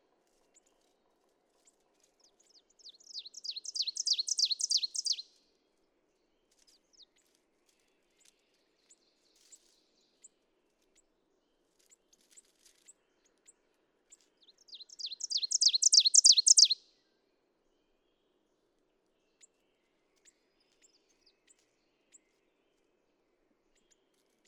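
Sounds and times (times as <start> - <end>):
ovenbird singing: 2.8 - 5.2, 14.5 - 16.8.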